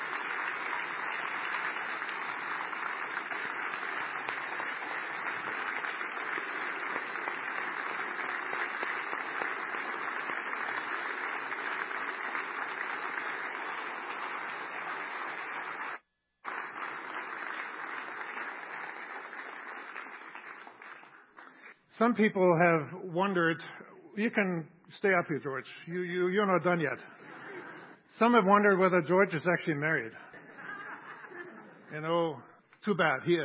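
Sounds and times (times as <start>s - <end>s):
audience applause: 0.0s - 21.8s
speech: 22.0s - 27.2s, 28.2s - 30.2s, 32.0s - 33.4s
laughter: 27.0s - 28.0s, 30.2s - 31.9s.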